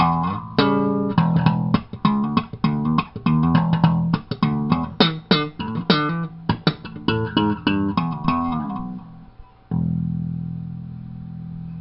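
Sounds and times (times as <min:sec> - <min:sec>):
slap groove: 0:00.0 - 0:09.0.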